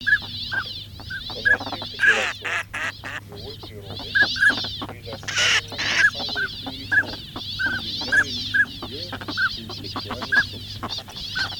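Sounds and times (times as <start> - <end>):
northern pintail calling: 0.0 - 11.5.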